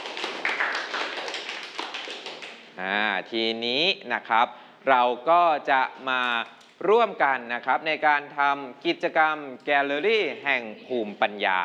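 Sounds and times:
students clapping: 0.0 - 2.7
speech: 2.8 - 11.6.

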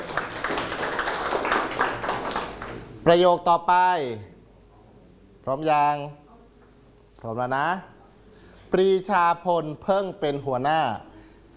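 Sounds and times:
students seated in a classroom clapping for a group of classmates: 0.0 - 2.9
speech: 3.0 - 4.3, 5.5 - 6.2, 7.2 - 7.9, 8.7 - 11.1.

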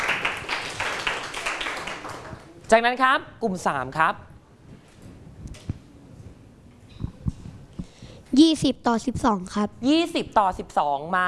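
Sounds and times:
classroom clapping for a student: 0.0 - 2.6
speech: 2.7 - 4.3, 8.4 - 11.2.

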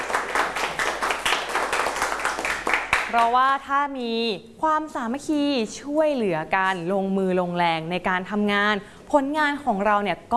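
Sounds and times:
group clapping for classmates: 0.0 - 3.4
speech: 3.1 - 10.3.

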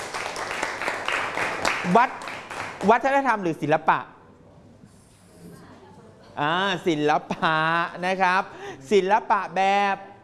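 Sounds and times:
classroom applause: 0.0 - 3.0
speech: 1.8 - 2.2, 2.8 - 4.2, 6.4 - 10.1.

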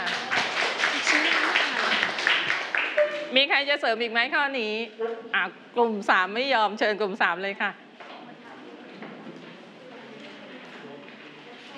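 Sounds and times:
applause for a group: 0.0 - 3.2
speech: 3.3 - 7.8.

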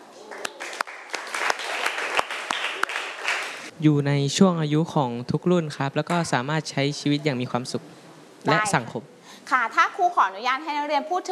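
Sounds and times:
students clapping: 0.3 - 3.7
speech: 3.8 - 11.3.

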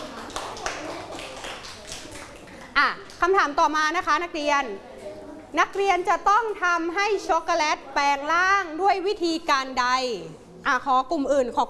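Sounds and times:
students clapping hands: 0.0 - 3.3
speech: 2.8 - 4.9, 5.5 - 11.6.

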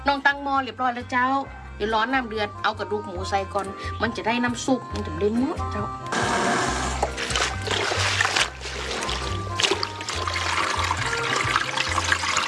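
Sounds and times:
speech: 0.0 - 6.6
water running while washing vegetables: 6.1 - 12.4.

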